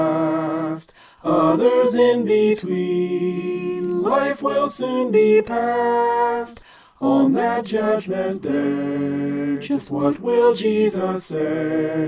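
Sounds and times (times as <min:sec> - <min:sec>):
soprano singing a Christmas song: 0:00.0 - 0:12.0.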